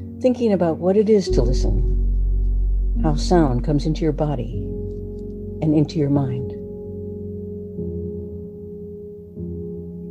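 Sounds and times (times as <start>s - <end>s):
speech: 0.2s - 2.0s, 3.0s - 4.8s, 5.6s - 6.4s
deep bells tolling: 1.3s - 8.4s.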